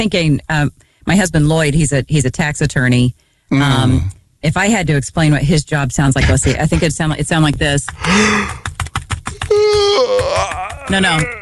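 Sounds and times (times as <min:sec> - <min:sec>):
speech: 0:00.0 - 0:08.7, 0:09.4 - 0:11.3
keyboard typing: 0:07.8 - 0:11.3
person yawning: 0:08.0 - 0:08.6, 0:09.5 - 0:11.3.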